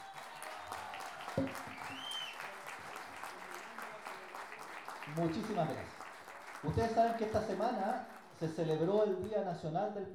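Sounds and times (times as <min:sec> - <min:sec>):
audience applause for Chilean improvising folk poets at a sung-verse competition: 0:00.0 - 0:09.4
speech: 0:01.4 - 0:01.7, 0:05.1 - 0:06.0, 0:06.6 - 0:10.1.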